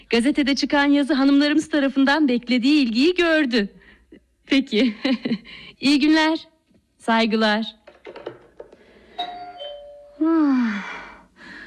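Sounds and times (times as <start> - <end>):
speech: 0.1 - 3.8, 4.5 - 7.8, 10.2 - 11.0
doorbell ringing: 9.1 - 10.2.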